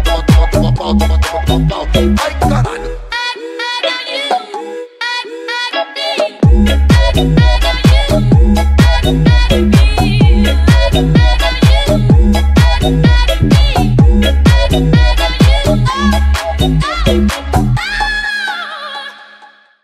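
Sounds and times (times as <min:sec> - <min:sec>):
mega funk music: 0:00.0 - 0:02.9, 0:06.4 - 0:18.5.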